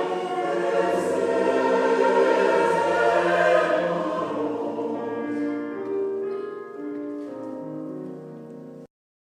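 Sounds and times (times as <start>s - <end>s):
sung chorus: 0.0s - 5.6s.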